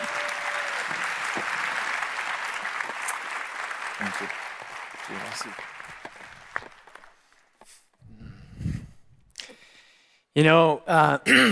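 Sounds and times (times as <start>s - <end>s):
audience round of applause: 0.0s - 7.8s
speech: 4.1s - 4.4s, 5.1s - 5.8s, 10.4s - 11.5s.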